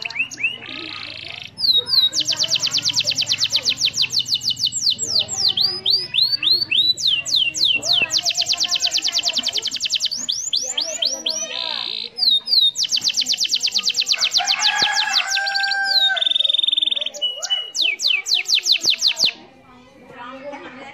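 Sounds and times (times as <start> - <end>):
canary song with buzzy rattles, trills and whistled phrases: 0.0 - 20.9.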